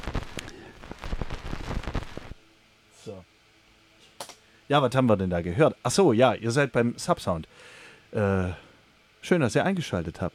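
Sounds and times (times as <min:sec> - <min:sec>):
vinyl record locked run-out groove crackle: 0:00.0 - 0:02.4
speech: 0:04.7 - 0:08.6, 0:09.2 - 0:10.3.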